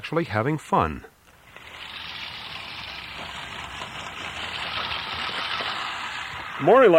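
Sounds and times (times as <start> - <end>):
speech: 0.0 - 1.1, 6.6 - 6.9
old-fashioned manual push lawnmower: 1.3 - 6.7.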